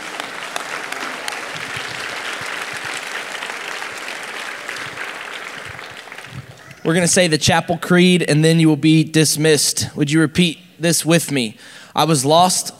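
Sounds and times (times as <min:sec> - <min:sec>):
large standing crowd round of applause: 0:00.0 - 0:07.1
speech: 0:06.9 - 0:12.7.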